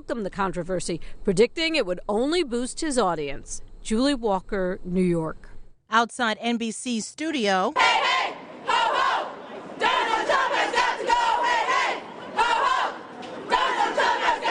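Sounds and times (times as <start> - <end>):
speech: 0.0 - 8.2
protesters chanting while marching from Trump Tower to the NBC studios in New York: 7.8 - 14.4.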